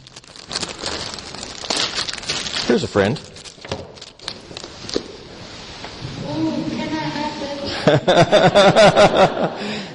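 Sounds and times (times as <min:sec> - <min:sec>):
trash crinkling as it is pulled from a pocket: 0:00.0 - 0:05.3
speech: 0:02.7 - 0:03.4, 0:07.9 - 0:09.9
laughter: 0:07.7 - 0:09.9.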